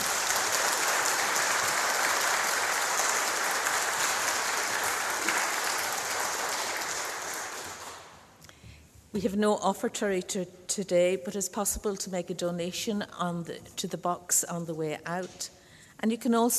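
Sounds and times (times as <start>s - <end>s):
crowd applauding: 0.0s - 8.3s
speech: 9.2s - 16.5s.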